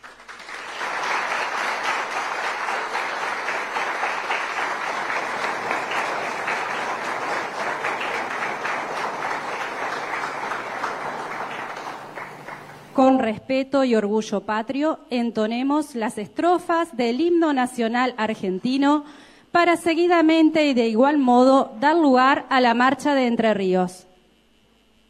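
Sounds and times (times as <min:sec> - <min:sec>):
large crowd applause: 0:00.0 - 0:13.0
speech: 0:13.0 - 0:24.1.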